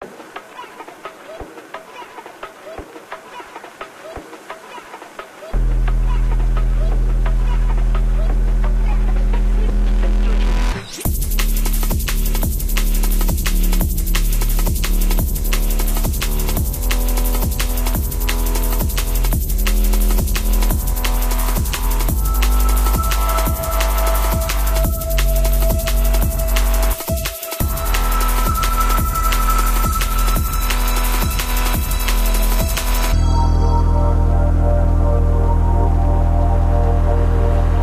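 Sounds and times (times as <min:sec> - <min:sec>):
old drum and bass music: 0:00.0 - 0:37.8.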